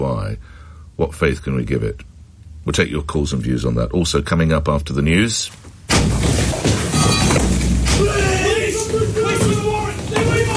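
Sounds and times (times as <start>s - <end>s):
speech: 0.0s - 6.5s, 7.1s - 8.3s
door being forced off its hinges in a Greater Manchester Police raid: 5.9s - 10.5s.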